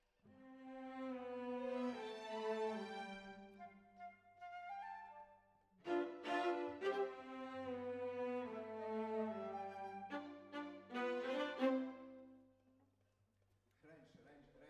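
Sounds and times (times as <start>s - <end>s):
violas: 0.5s - 4.6s, 5.8s - 12.4s.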